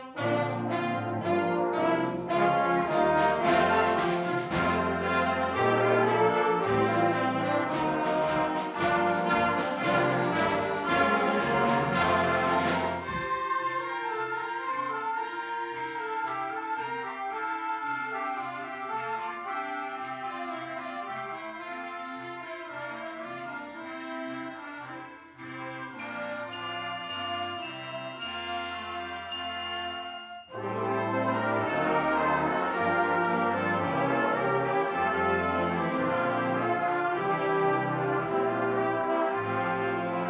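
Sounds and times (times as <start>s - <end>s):
band playing: 0.1s - 40.2s
bells ringing: 1.9s - 4.6s, 11.0s - 24.2s, 24.8s - 31.0s.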